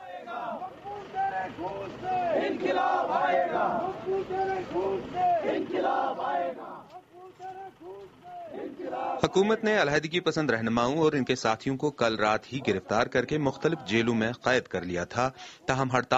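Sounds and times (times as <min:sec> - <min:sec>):
protesters chanting at demonstration: 0:00.0 - 0:09.8, 0:12.5 - 0:14.3
speech: 0:01.5 - 0:06.7, 0:09.0 - 0:16.1.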